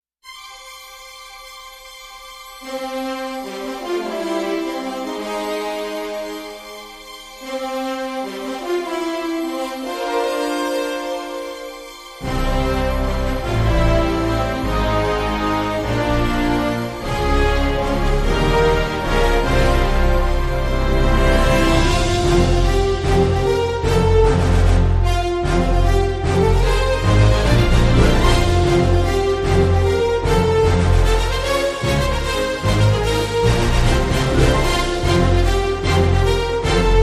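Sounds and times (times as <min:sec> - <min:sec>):
fanfare: 0:02.6 - 0:37.0.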